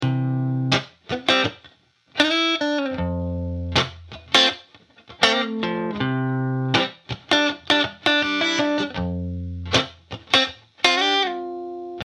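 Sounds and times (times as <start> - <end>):
refreshing guitar playing: 0.0 - 12.0.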